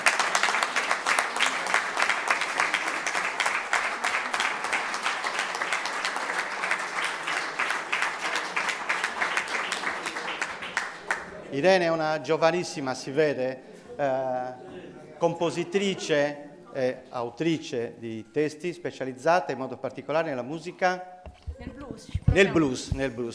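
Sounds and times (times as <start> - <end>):
audience applause: 0.0 - 11.4
speech: 11.6 - 23.3.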